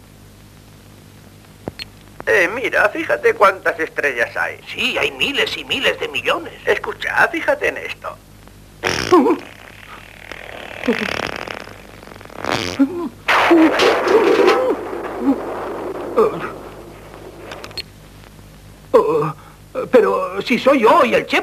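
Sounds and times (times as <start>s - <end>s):
speech: 2.3s - 8.3s, 12.8s - 13.9s, 19.9s - 21.4s
farting: 8.8s - 17.9s.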